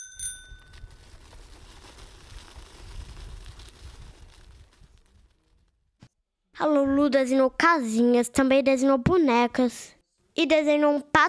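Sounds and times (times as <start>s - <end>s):
bicycle bell ringing: 0.0s - 0.9s
speech: 6.6s - 11.2s.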